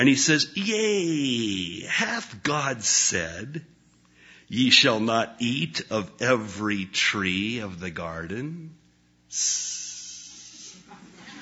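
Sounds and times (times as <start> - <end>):
speech: 0.0 - 3.8, 4.5 - 9.8
voice imitating a snake's hiss: 9.3 - 10.9.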